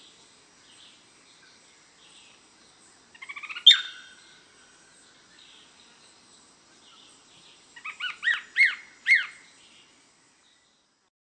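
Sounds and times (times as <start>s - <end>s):
Greyish Mourner Rhytipterna simplex simplex calling: 3.2s - 4.2s, 7.8s - 9.4s.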